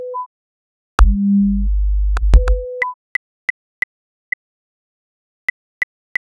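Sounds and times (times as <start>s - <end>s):
sine wave tone: 1.1s - 2.9s.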